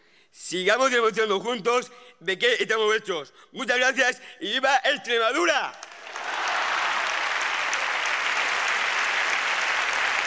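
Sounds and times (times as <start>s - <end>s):
speech: 0.4s - 5.9s
audience ovation: 5.8s - 10.2s.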